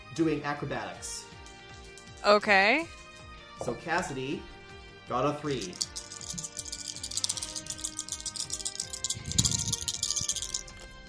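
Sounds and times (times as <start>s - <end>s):
speech: 0.2s - 1.3s, 2.2s - 3.0s, 3.6s - 4.5s, 5.1s - 6.5s
dice being rolled: 1.4s - 2.3s, 5.5s - 10.9s.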